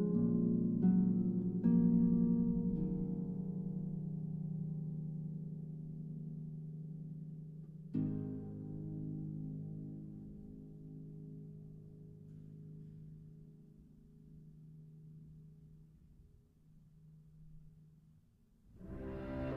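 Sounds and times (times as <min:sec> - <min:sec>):
harp concerto lullaby: 0:00.0 - 0:06.9, 0:07.7 - 0:13.4, 0:18.8 - 0:19.5.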